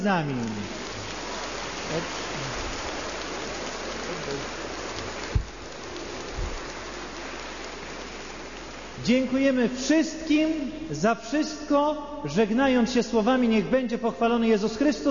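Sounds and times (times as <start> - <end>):
speech: 0.0 - 0.8, 1.9 - 2.4, 4.1 - 4.6, 9.0 - 15.0
large crowd applauding warmly: 0.0 - 9.4
low thumps: 5.1 - 6.7.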